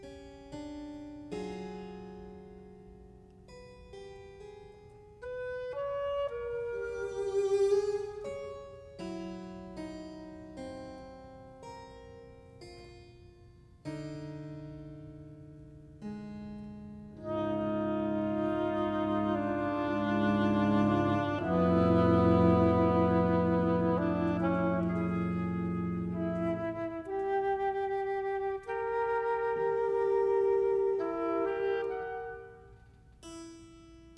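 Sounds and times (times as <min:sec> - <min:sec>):
flute: 0:05.2 - 0:09.1, 0:17.2 - 0:33.0
oboe: 0:05.2 - 0:09.3, 0:17.2 - 0:33.0
cello: 0:05.8 - 0:09.3, 0:17.2 - 0:32.6
harpsichord: 0:19.4 - 0:27.8.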